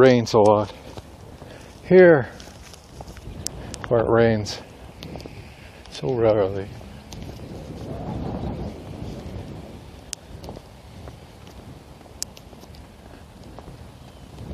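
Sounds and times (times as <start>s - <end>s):
speech: 0.0s - 0.8s, 1.9s - 2.4s, 3.9s - 4.7s, 6.0s - 6.8s
stiff wind before a thunderstorm: 0.0s - 14.5s.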